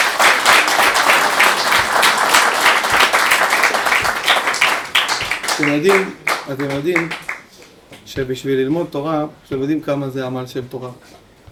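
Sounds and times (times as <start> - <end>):
applause: 0.0 - 7.5
speech: 5.6 - 7.2, 8.1 - 11.2.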